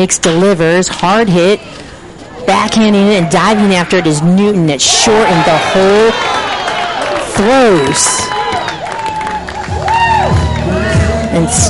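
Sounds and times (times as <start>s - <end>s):
speech: 0.0s - 1.9s, 2.5s - 6.4s, 7.4s - 8.4s, 11.4s - 11.6s
baseball crowd cheering: 4.8s - 11.6s.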